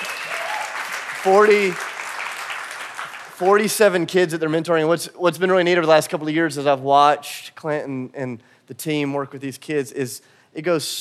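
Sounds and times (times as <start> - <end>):
church audience applauding and cheering: 0.0 - 4.0
speech: 1.2 - 1.8, 3.4 - 11.0.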